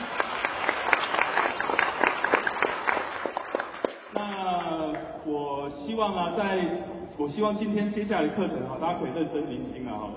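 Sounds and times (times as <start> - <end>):
crowd applauding: 0.0 - 5.0
speech: 6.0 - 10.1.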